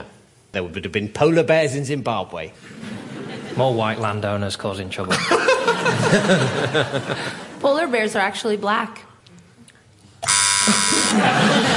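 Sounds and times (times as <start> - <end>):
speech: 0.6 - 2.9, 3.6 - 9.1, 10.7 - 11.7
laughter: 2.6 - 4.1, 5.1 - 7.6, 10.6 - 11.7
quiz show buzzer: 10.2 - 11.7.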